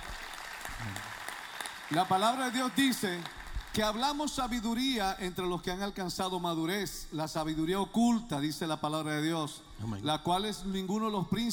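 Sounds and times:
audience applauding: 0:00.0 - 0:04.1
speech: 0:01.9 - 0:11.5.

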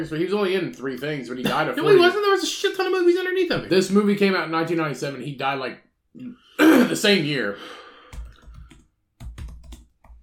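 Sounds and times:
speech: 0:00.0 - 0:07.8
loud rapid typing on a computer keyboard: 0:08.1 - 0:10.2.

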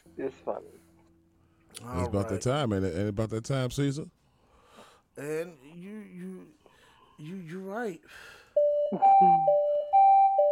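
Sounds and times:
speech: 0:00.2 - 0:00.9, 0:01.7 - 0:04.2, 0:05.2 - 0:06.6, 0:07.2 - 0:09.7
alarm sound effect for segment: 0:08.6 - 0:10.4.

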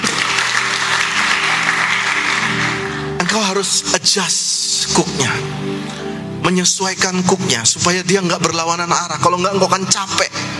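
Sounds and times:
audience applause: 0:00.0 - 0:03.4
speech: 0:03.4 - 0:05.5, 0:06.4 - 0:10.5.

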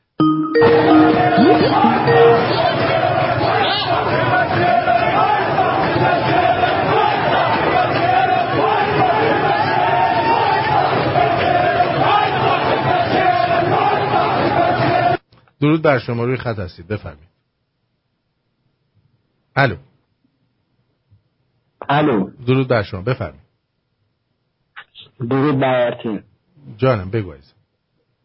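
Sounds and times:
crowd cheering and chanting celebrating the capture of Susangerd: 0:00.5 - 0:15.2
speech: 0:00.6 - 0:02.6, 0:15.6 - 0:17.3, 0:19.6 - 0:19.9, 0:21.9 - 0:23.4, 0:25.2 - 0:27.6.

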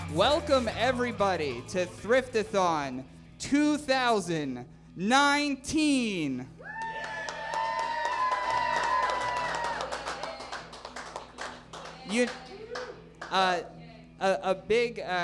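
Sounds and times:
speech: 0:00.2 - 0:06.6, 0:12.1 - 0:12.4, 0:13.3 - 0:15.2
clapping and cheering: 0:06.6 - 0:13.4.

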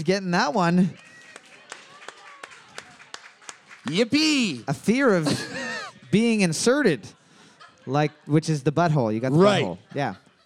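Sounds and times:
speech: 0:00.0 - 0:01.1, 0:03.8 - 0:05.5, 0:06.1 - 0:07.2, 0:07.9 - 0:10.2
applause: 0:00.0 - 0:04.9
laughter: 0:03.9 - 0:10.4.

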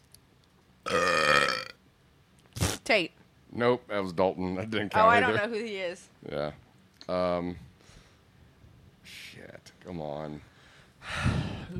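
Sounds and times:
loud croaky burp: 0:00.8 - 0:01.8
speech: 0:02.9 - 0:07.7, 0:09.1 - 0:11.7.

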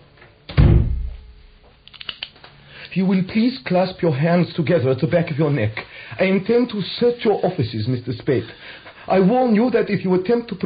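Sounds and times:
door swinging shut with a heavy thump: 0:00.5 - 0:01.3
speech: 0:02.9 - 0:10.6.

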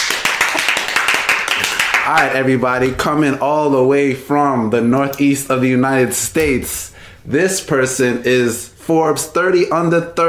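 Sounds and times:
applause sound effect: 0:00.0 - 0:02.4
speech: 0:02.1 - 0:10.2.

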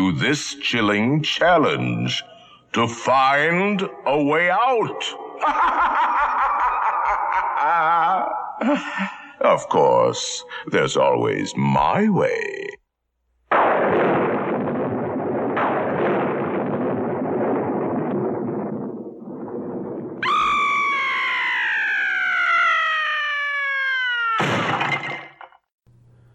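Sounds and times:
speech: 0:00.0 - 0:06.3, 0:08.1 - 0:12.8
laughter: 0:05.4 - 0:09.4
sharp crash: 0:13.5 - 0:20.6, 0:24.4 - 0:25.6
thunder clap rumbling: 0:13.5 - 0:22.4
high wavering scream: 0:20.2 - 0:24.7.

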